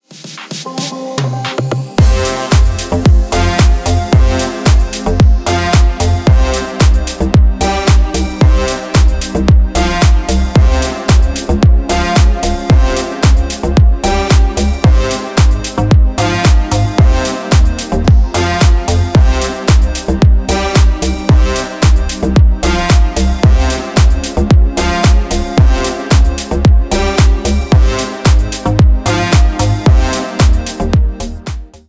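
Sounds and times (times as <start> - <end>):
instrumental music: 0.1 - 31.8.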